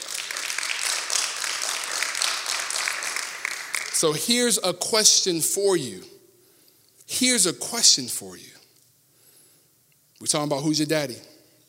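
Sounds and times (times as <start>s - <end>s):
crowd clapping: 0.0s - 4.4s
speech: 4.0s - 6.2s, 7.1s - 8.6s, 10.2s - 11.3s.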